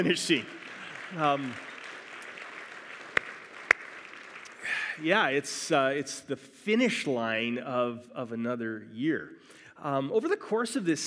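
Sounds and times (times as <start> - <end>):
speech: 0.0 - 1.7, 5.0 - 11.0
sharp louder claps: 0.0 - 5.0
audience applauding: 0.0 - 5.4.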